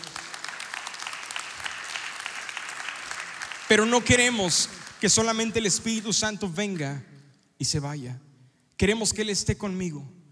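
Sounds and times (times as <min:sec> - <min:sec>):
audience applause: 0:00.0 - 0:06.0
speech: 0:03.7 - 0:10.2.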